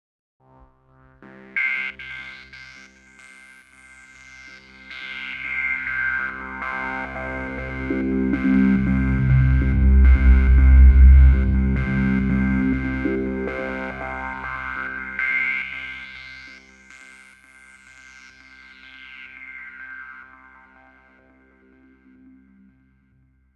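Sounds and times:
acid arpeggiated bass: 6.3 - 15.2.

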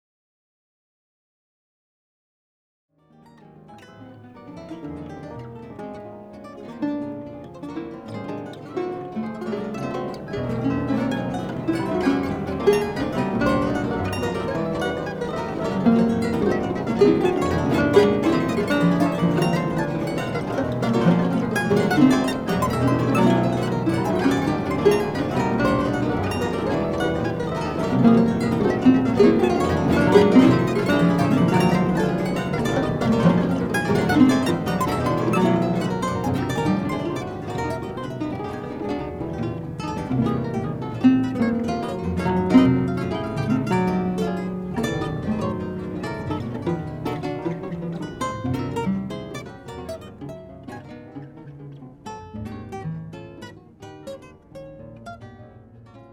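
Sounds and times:
complex guitar: 3.0 - 56.1
cello: 3.2 - 54.2.

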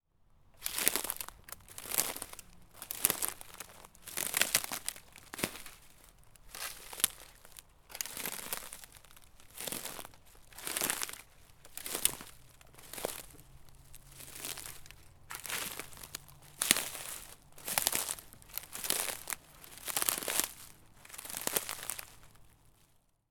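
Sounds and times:
walking on dry branches: 0.6 - 22.9.

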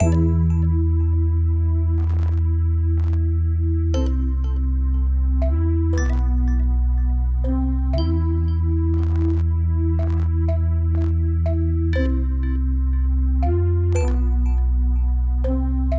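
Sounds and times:
video game title screen music: 0.0 - 15.9.

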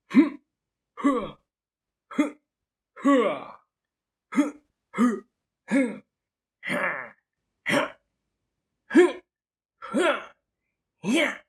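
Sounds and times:
cartoon-like male attack effort vocal: 0.1 - 0.4, 1.0 - 1.4, 2.1 - 2.4, 3.0 - 3.6, 4.3 - 8.0, 8.9 - 9.2, 9.8 - 10.4, 11.0 - 11.4.

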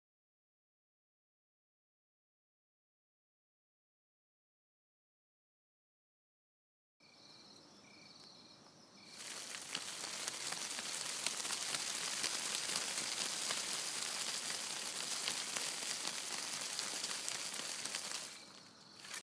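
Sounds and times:
trees shaking: 9.1 - 19.2.

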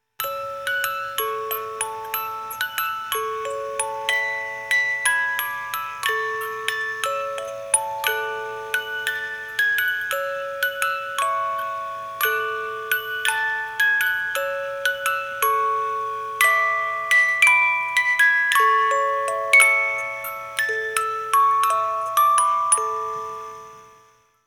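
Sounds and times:
music box Christmas carol melody: 0.2 - 24.4.

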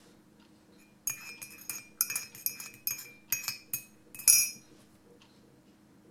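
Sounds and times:
spoon stirring a cup of tea: 0.8 - 4.7.

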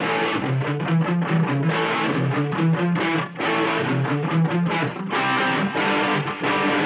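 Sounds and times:
guitars: 0.0 - 6.8.

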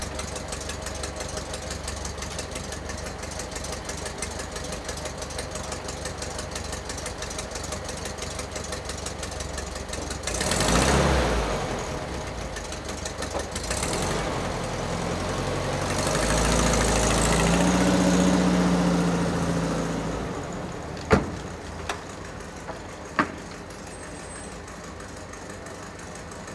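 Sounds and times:
Volkswagen Beetle: 0.0 - 26.5.

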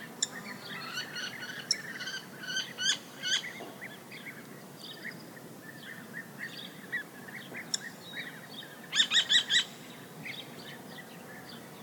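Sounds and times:
small birds chirping softly: 0.1 - 11.8.

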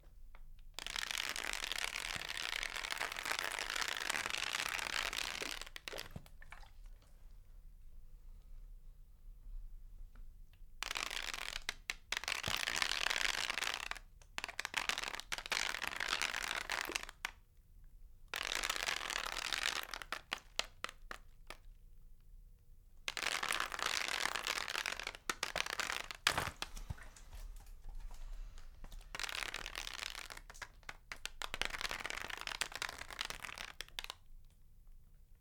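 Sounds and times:
blood dripping on a plastic bag: 0.6 - 7.0, 10.8 - 17.3, 18.3 - 21.7, 23.1 - 34.6.

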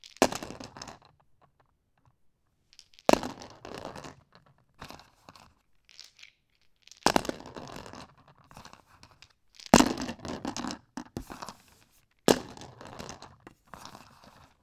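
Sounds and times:
dice rolling: 5.9 - 14.5.

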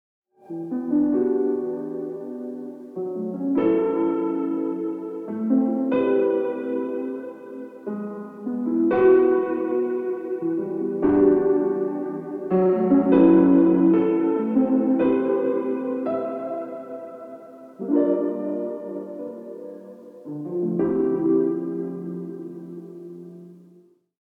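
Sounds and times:
nostalgic lofi piano music in E minor: 0.4 - 24.1.

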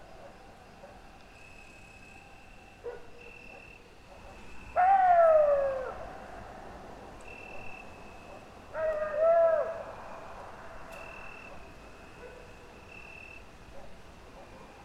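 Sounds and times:
coyote wailing calls in a pine forest at midnight: 4.6 - 6.3, 8.7 - 10.0.

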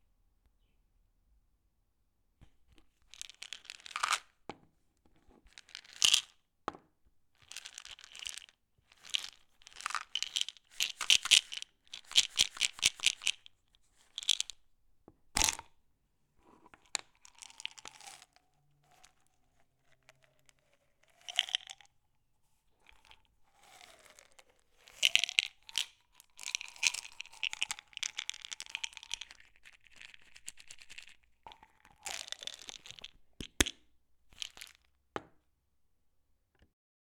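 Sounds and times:
pill container: 3.0 - 4.4, 5.5 - 6.4, 7.4 - 14.6, 15.4 - 15.7, 16.4 - 22.0, 22.8 - 35.4.

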